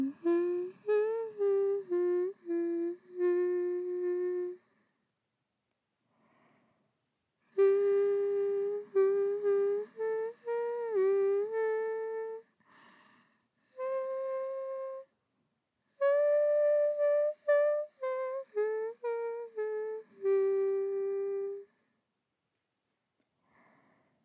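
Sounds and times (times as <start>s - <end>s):
person singing a lullaby: 0.0s - 4.8s, 7.5s - 12.6s, 13.6s - 15.1s, 15.9s - 21.8s.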